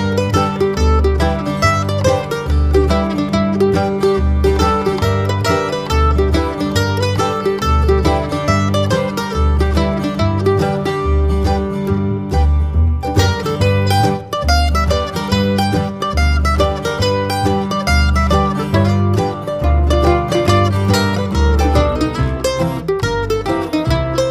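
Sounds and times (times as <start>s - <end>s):
mandolin: 0.0s - 24.2s.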